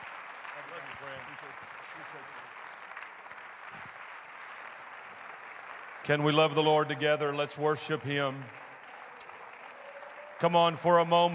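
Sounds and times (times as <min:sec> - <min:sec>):
church congregation applauding during a service: 0:00.0 - 0:11.3
speech: 0:00.8 - 0:02.8, 0:06.0 - 0:08.6, 0:10.4 - 0:11.3.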